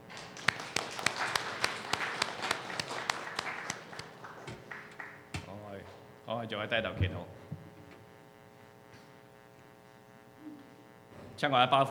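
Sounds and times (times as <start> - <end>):
audience applauding: 0.0 - 5.4
speech: 6.4 - 7.4, 11.4 - 11.9.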